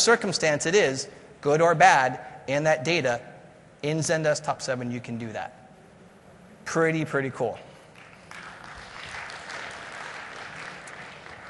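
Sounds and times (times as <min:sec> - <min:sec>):
speech: 0:00.0 - 0:05.6, 0:06.6 - 0:07.7
audience applause: 0:08.0 - 0:11.4.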